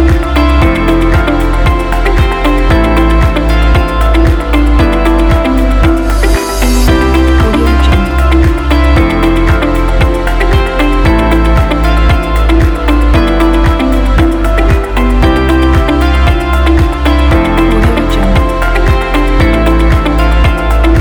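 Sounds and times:
upbeat and inspiring corporate music: 0.0 - 21.0.

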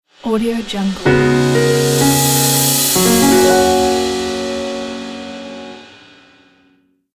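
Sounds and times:
piano logo jingle: 0.9 - 6.5.

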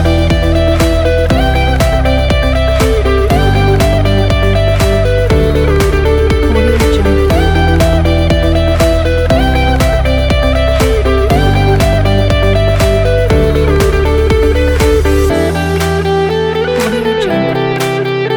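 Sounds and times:
upbeat corporate music: 0.0 - 18.3.

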